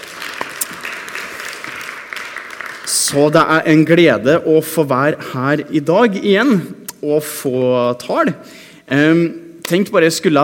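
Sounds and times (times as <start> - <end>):
applause from a Norwegian church gathering: 0.0 - 3.2
speech: 3.1 - 10.4.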